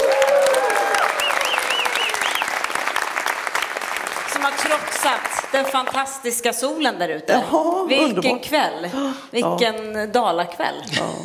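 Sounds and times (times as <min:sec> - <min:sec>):
live audience applause at a political game show at Kulturhuset in Falun: 0:00.0 - 0:06.3
speech: 0:05.0 - 0:11.2.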